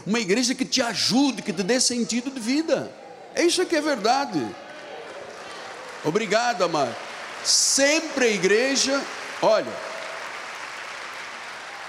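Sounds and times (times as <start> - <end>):
speech: 0.0 - 4.6, 6.0 - 9.9
audience applause: 4.3 - 11.8.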